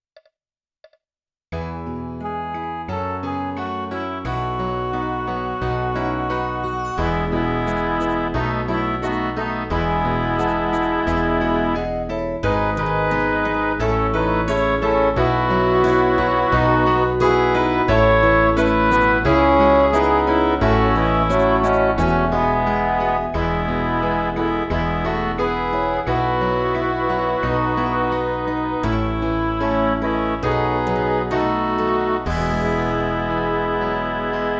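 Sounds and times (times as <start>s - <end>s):
MIDI music: 1.8s - 34.5s.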